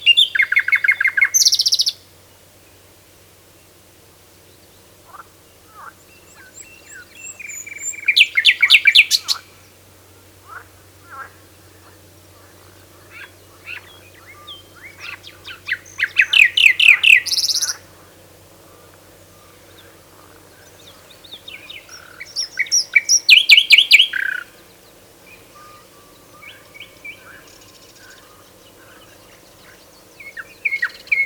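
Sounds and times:
common nightingale singing: 0.0s - 2.1s, 4.5s - 9.6s, 12.6s - 17.8s, 19.3s - 31.2s.

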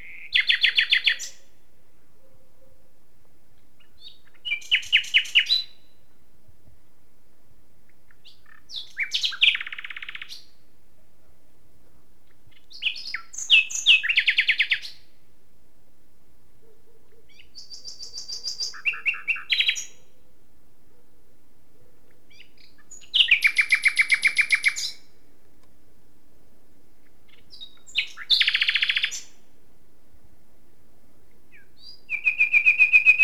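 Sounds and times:
Common nightingale song of sharp repeated notes and whistles: 0.0s - 2.4s, 3.5s - 6.2s, 7.8s - 10.7s, 12.2s - 15.2s, 17.1s - 20.2s, 21.8s - 25.3s, 26.7s - 29.6s, 31.2s - 33.2s.

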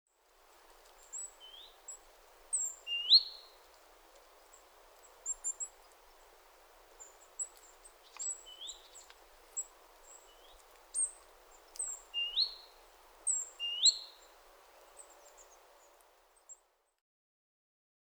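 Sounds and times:
hiss: 0.1s - 16.7s
great tit chirps: 1.0s - 3.6s, 7.0s - 16.6s.

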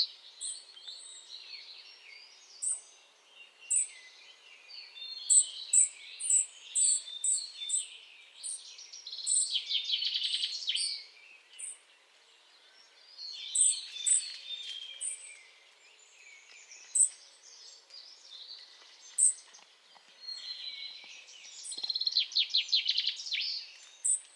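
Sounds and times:
European robin singing: 0.0s - 24.3s.

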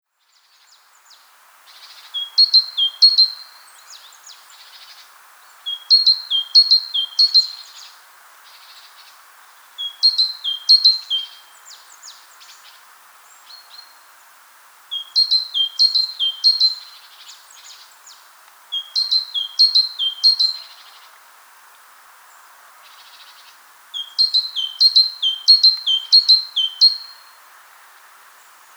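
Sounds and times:
faint steady hiss: 0.0s - 28.7s
great tit singing: 1.9s - 5.0s, 5.6s - 8.0s, 9.8s - 12.7s, 14.9s - 21.0s, 22.9s - 27.3s.

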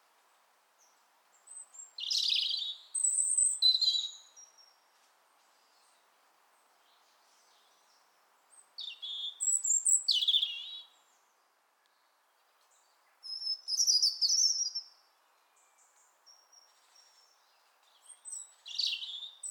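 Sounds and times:
European robin song: 1.5s - 4.7s, 8.8s - 11.1s, 13.2s - 14.9s, 15.7s - 19.4s.

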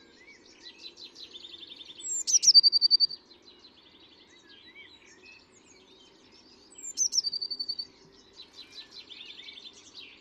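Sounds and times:
Eurasian blue tit song: 0.3s - 3.2s, 4.6s - 10.1s.

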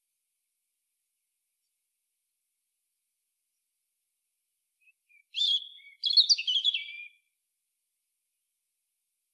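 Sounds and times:
European robin song of whistles and warbled notes: 4.8s - 7.4s.

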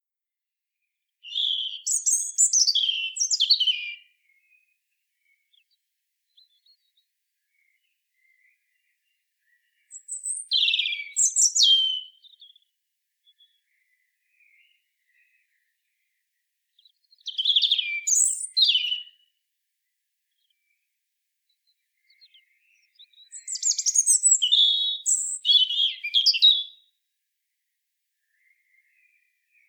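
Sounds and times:
European robin song: 1.2s - 16.2s, 16.8s - 19.4s, 21.6s - 26.9s.

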